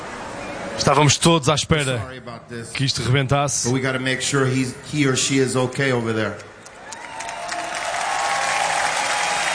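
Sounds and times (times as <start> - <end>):
speech: 0.8 - 6.5
concert audience applause: 6.7 - 9.5.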